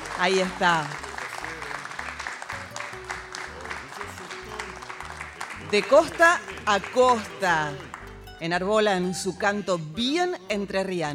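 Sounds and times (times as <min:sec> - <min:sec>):
audience applause: 0:00.0 - 0:08.2
speech: 0:00.2 - 0:01.0, 0:05.7 - 0:11.1.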